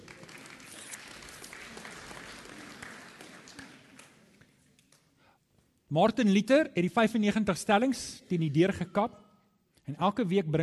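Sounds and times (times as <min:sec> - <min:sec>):
audience applause: 0:00.0 - 0:04.2
speech: 0:05.9 - 0:09.2, 0:09.9 - 0:10.6.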